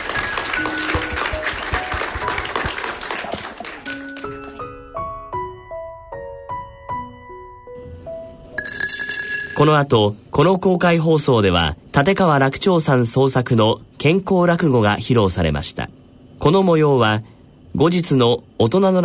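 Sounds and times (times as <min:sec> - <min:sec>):
audience applause: 0:00.0 - 0:04.7
speech: 0:09.6 - 0:19.0.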